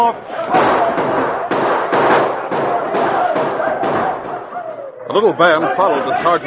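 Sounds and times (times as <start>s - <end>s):
speech: 0.0s - 0.5s, 5.2s - 6.4s
rifle gunfire volley: 0.5s - 4.5s.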